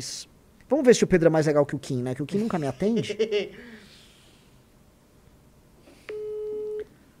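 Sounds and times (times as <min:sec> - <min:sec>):
speech: 0:00.0 - 0:03.9
faint hiss: 0:00.0 - 0:07.1
laughter: 0:02.4 - 0:03.7
phone ringback tone: 0:06.1 - 0:06.8.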